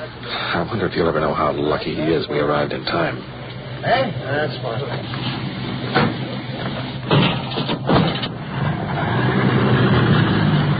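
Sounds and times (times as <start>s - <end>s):
motor vehicle engine carrying an injured man to the hospital: 0.0s - 10.7s
speech: 0.3s - 6.1s
thumps: 5.9s - 8.4s.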